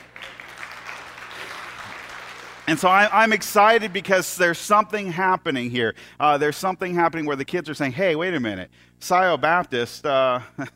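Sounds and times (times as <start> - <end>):
audience clapping: 0.0 - 4.2
speech: 2.7 - 10.7.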